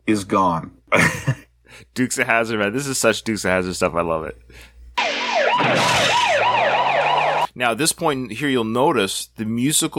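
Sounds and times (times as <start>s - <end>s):
speech: 0.1s - 4.8s, 7.6s - 9.9s
police siren wailing in car chase: 5.0s - 7.5s.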